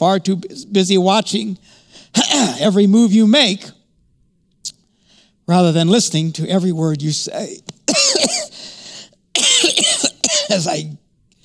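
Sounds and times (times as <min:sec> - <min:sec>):
speech: 0:00.0 - 0:03.8, 0:05.5 - 0:08.4, 0:10.5 - 0:11.0
person coughing: 0:02.2 - 0:02.7, 0:07.9 - 0:08.6, 0:09.4 - 0:10.8.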